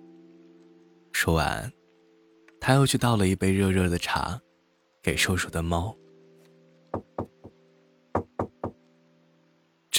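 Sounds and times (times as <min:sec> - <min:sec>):
speech: 0:01.2 - 0:01.8, 0:02.6 - 0:06.0
knocking on a door: 0:07.0 - 0:07.6, 0:08.2 - 0:08.8.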